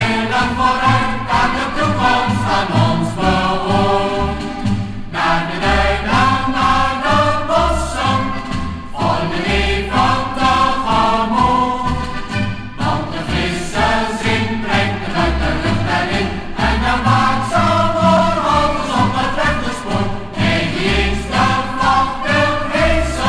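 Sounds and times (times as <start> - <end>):
mixed choir singing: 0.0 - 23.2.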